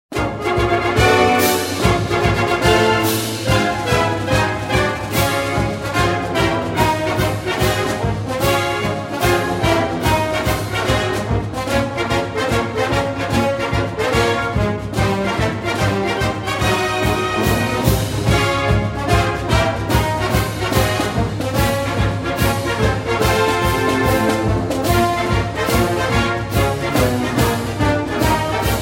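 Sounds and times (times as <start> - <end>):
song: 0.1 - 28.8.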